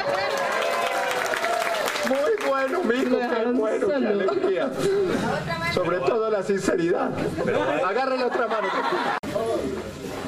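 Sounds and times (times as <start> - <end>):
audience applause: 0.0 - 3.2
speech: 2.1 - 9.2
laughter: 3.3 - 5.5, 7.0 - 9.4.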